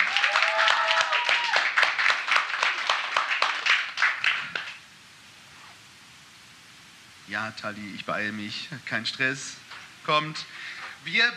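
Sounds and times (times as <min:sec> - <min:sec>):
audience applause: 0:00.0 - 0:04.8
speech: 0:07.4 - 0:11.3.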